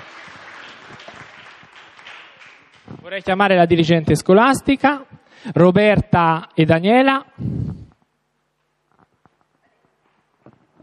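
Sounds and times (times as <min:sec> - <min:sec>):
audience applauding young women at a school event: 0:00.0 - 0:03.3
speech: 0:03.0 - 0:07.5.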